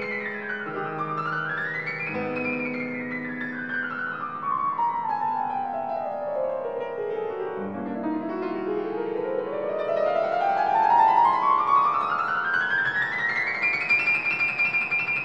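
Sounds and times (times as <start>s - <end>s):
piano: 0.0s - 15.2s.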